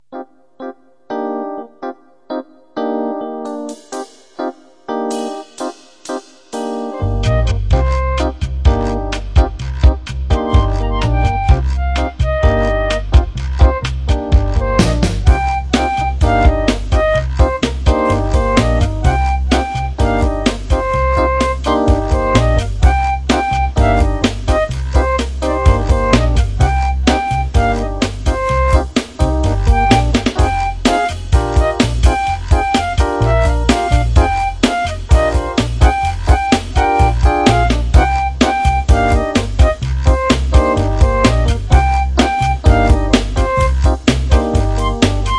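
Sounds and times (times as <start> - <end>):
jazz music: 0.2 - 45.3.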